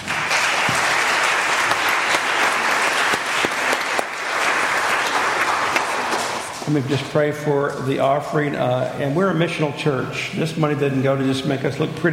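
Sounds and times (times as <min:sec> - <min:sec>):
church audience applause for young people: 0:00.0 - 0:07.0
speech: 0:06.7 - 0:12.1.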